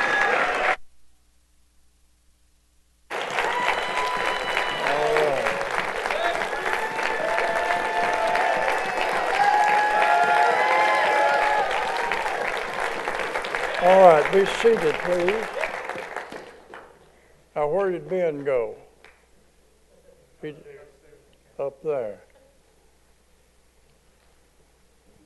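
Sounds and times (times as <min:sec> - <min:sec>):
crowd applause: 0:00.0 - 0:00.8, 0:03.1 - 0:17.0
speech: 0:14.4 - 0:15.6, 0:17.6 - 0:18.8, 0:20.4 - 0:20.7, 0:21.6 - 0:22.2.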